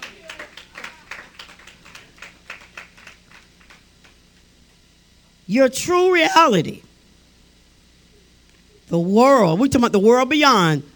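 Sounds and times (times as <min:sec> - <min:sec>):
group clapping hands in a quick steady rhythm: 0:00.0 - 0:04.4
speech: 0:05.5 - 0:06.9, 0:08.9 - 0:10.9.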